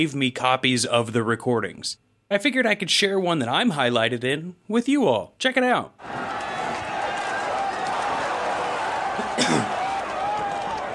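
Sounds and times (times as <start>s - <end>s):
speech: 0.0s - 6.4s, 9.4s - 9.7s
murmuring voices: 6.0s - 10.9s
sneeze: 9.3s - 9.7s.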